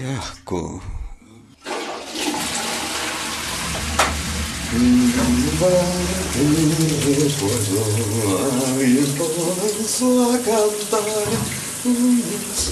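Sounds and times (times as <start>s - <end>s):
speech: 0.0s - 1.0s, 4.7s - 12.7s
spacecraft toilet draining waste with rushing water and suction: 1.6s - 12.7s.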